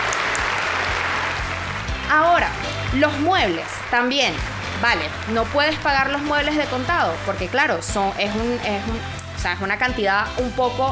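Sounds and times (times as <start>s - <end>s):
group applauding: 0.0s - 7.7s
speech: 2.1s - 10.8s.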